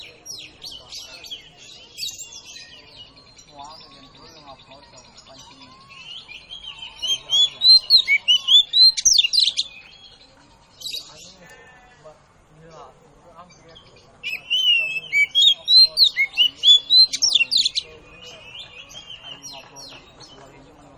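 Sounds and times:
Oriental magpie-robin calls: 0:00.0 - 0:11.9, 0:13.4 - 0:20.9.

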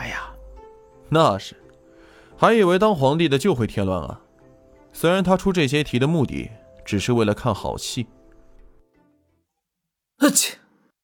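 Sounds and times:
speech: 0:01.1 - 0:01.6, 0:02.4 - 0:04.2, 0:05.0 - 0:08.2, 0:10.2 - 0:10.6
person sneezing: 0:10.2 - 0:10.7.

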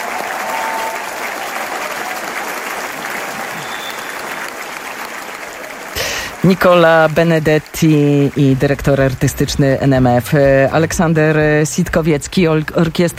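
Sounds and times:
concert audience standing ovation applause: 0:00.0 - 0:10.5
speech: 0:06.4 - 0:13.1.

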